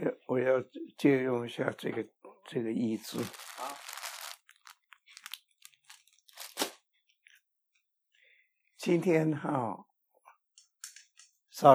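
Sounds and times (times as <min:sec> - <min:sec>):
speech: 0:00.4 - 0:03.6, 0:08.8 - 0:09.9, 0:11.6 - 0:11.7
communion wafers being chewed: 0:03.6 - 0:07.4.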